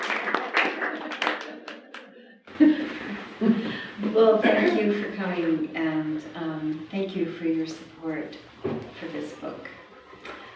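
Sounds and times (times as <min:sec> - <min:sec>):
audience clapping: 0:00.0 - 0:03.4
laughter: 0:00.0 - 0:05.9
voices chattering: 0:02.5 - 0:10.5
speech: 0:03.4 - 0:09.8.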